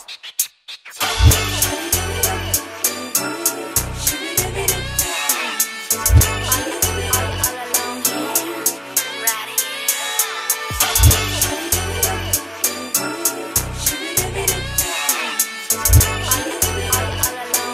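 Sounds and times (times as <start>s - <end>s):
90s pop music: 1.0s - 17.7s.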